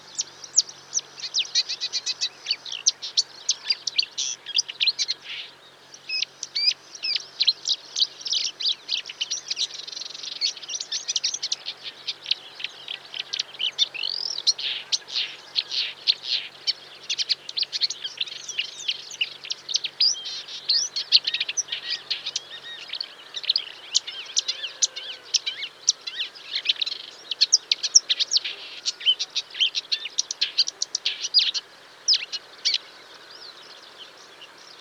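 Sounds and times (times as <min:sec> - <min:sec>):
Marsh Warbler birdsong: 0:00.0 - 0:34.8.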